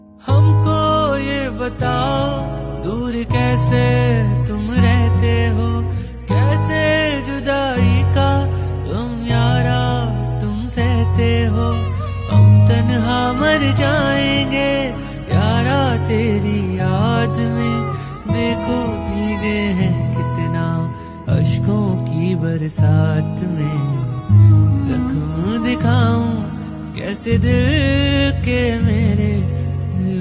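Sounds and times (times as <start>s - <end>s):
sad song: 0.0s - 30.2s.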